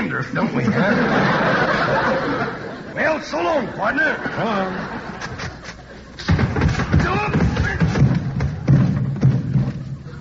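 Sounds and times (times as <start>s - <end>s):
speech: 0.2s - 5.2s
laughter: 0.4s - 6.3s
person falling down cellar stairs: 6.3s - 9.9s.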